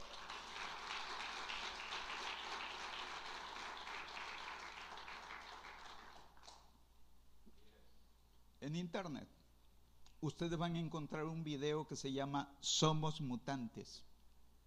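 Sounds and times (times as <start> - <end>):
crowd applause: 0.0 - 6.6
speech: 8.7 - 9.4, 10.2 - 14.1.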